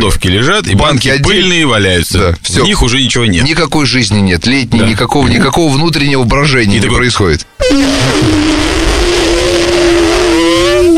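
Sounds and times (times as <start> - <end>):
speech: 0.0 - 8.8
voice imitating a buzzing mosquito: 7.6 - 10.9.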